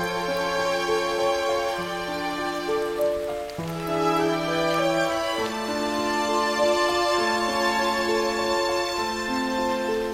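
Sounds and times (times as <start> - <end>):
music with sustained held tones and slow chords: 0.0 - 10.1
steady hiss of rain: 0.0 - 10.1.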